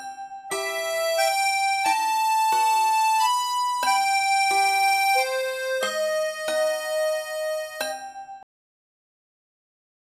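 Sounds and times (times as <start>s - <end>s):
sad background music: 0.6s - 7.9s.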